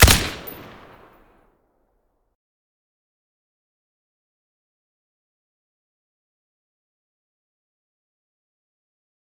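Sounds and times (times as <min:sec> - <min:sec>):
AK-103 rifle with silencer firing: 0:00.0 - 0:01.1.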